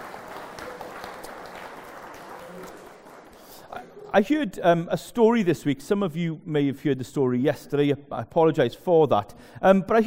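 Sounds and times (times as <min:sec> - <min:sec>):
audience applause: 0:00.0 - 0:03.7
speech: 0:04.1 - 0:10.0.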